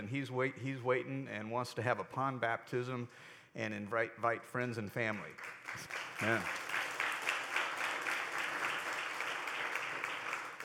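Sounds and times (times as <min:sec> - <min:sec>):
speech: 0:00.0 - 0:06.7
audience clapping: 0:05.1 - 0:10.6.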